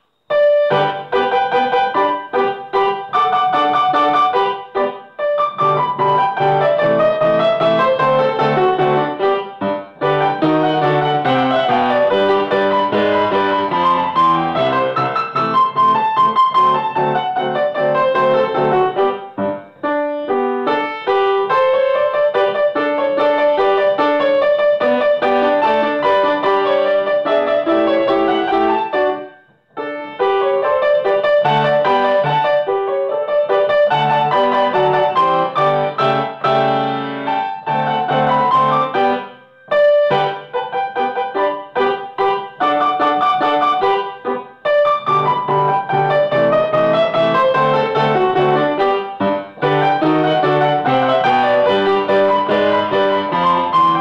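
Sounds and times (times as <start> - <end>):
piano waltz: 0.0 - 53.9.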